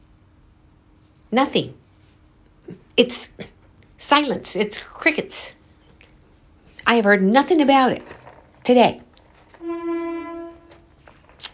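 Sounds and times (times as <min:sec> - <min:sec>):
speech: 0:01.3 - 0:01.8, 0:03.0 - 0:05.6, 0:06.8 - 0:09.0
car horn honking outside: 0:09.6 - 0:10.9.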